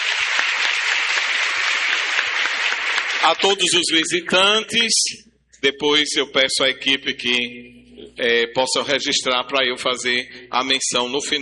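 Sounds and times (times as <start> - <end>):
audience applause: 0.0 - 3.8
speech: 3.2 - 11.4.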